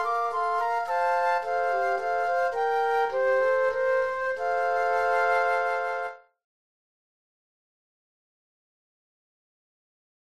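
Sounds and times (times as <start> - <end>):
flute trio playing: 0.0 - 6.3.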